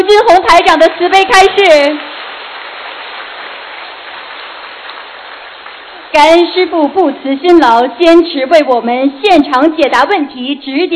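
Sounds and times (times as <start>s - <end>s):
speech: 0.0s - 2.1s, 6.1s - 10.9s
audience applause: 1.0s - 6.2s.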